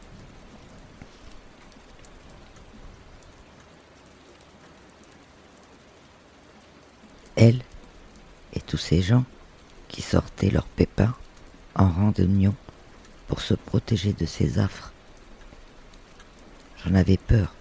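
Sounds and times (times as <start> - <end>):
rain falling: 0.0 - 17.6
speech: 7.4 - 7.7, 8.7 - 9.4, 10.0 - 11.2, 11.8 - 12.6, 13.3 - 14.9, 16.8 - 17.6.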